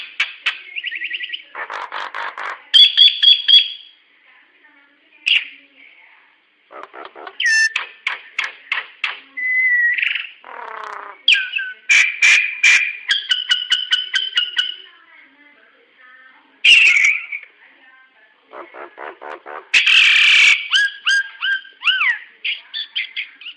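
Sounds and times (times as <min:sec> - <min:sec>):
hill myna vocalizations: 0:00.0 - 0:03.8, 0:06.7 - 0:14.9, 0:16.6 - 0:17.5, 0:18.4 - 0:23.5.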